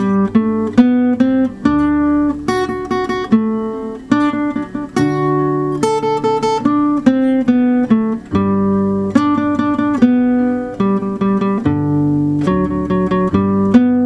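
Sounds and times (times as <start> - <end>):
sixteenth note etude melody: 0.0 - 14.0.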